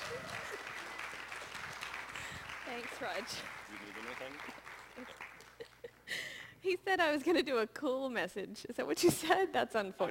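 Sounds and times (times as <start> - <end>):
room full of people clapping: 0.0 - 6.1
speech: 2.8 - 5.3, 6.6 - 10.1.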